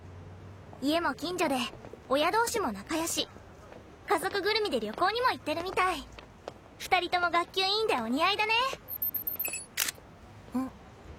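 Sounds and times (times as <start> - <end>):
speech: 0.8 - 3.4, 4.1 - 6.2, 6.8 - 8.8
camera shutter clicking while taking photos: 9.5 - 10.0.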